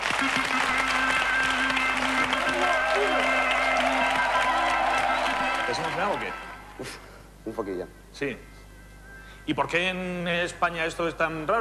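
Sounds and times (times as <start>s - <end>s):
studio audience applause and cheering: 0.0s - 6.9s
speech: 6.0s - 8.5s, 9.5s - 11.5s.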